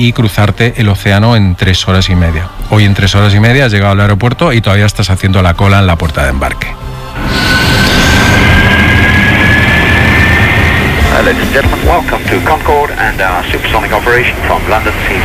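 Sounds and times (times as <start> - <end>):
speech: 0.0 - 8.6, 11.2 - 15.2
Concorde jet engine roar: 7.0 - 15.2.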